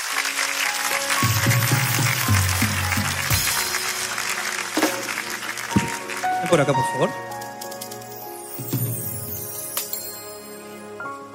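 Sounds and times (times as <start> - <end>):
audience applause: 0.0 - 7.2
speech: 6.5 - 7.4.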